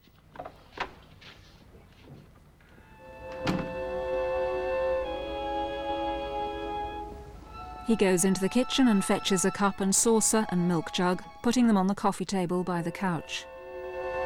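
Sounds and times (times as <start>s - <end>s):
faint knocks: 0.2s - 3.9s
steady sustained tonal hum: 2.8s - 14.2s
door shutting with a solid thunk: 3.2s - 4.2s
speech: 7.9s - 13.5s.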